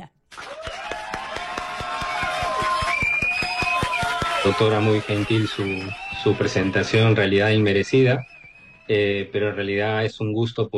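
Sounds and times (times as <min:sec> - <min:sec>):
audience clapping: 0:00.3 - 0:08.6
speech: 0:04.5 - 0:08.3, 0:08.9 - 0:10.7.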